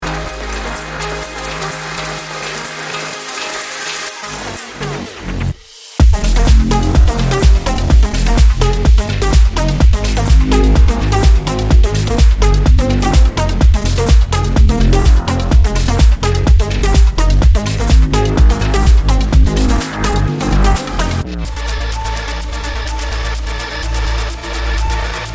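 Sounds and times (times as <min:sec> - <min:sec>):
melodic techno: 0:00.0 - 0:25.3.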